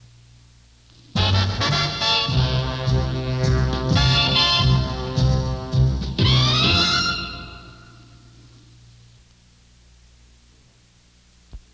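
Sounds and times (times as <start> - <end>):
fun music bed: 1.1 - 8.2.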